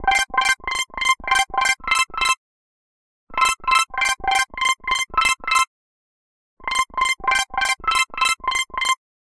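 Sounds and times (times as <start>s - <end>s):
ringtone: 0.0s - 2.4s, 3.4s - 5.7s, 6.6s - 9.0s.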